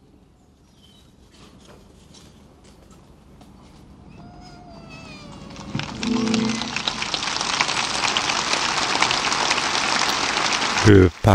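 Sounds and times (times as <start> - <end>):
audience applause after homily: 5.5 - 11.3
faint tone: 5.9 - 7.2.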